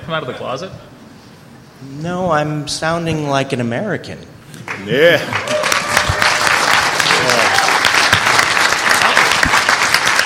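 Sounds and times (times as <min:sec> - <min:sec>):
speech: 0:00.1 - 0:00.9, 0:01.8 - 0:05.6
audience applause: 0:04.7 - 0:10.2.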